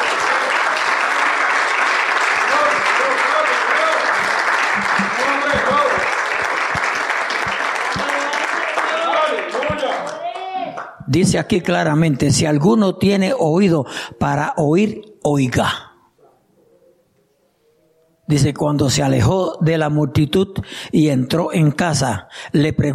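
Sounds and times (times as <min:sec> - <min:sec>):
audience applause: 0:00.0 - 0:10.9
people shouting and cheering: 0:02.5 - 0:10.9
speech: 0:11.1 - 0:15.8, 0:18.3 - 0:22.9.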